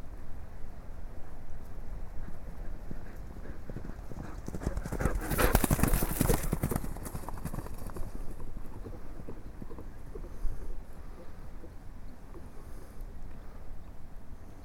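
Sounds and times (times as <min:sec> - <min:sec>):
several ponies galloping hoofbeats: 0:01.9 - 0:11.7.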